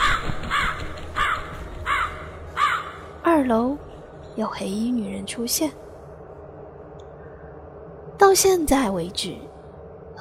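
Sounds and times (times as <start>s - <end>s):
crows cawing: 0.0s - 3.2s
speech: 3.5s - 5.8s, 8.2s - 9.5s.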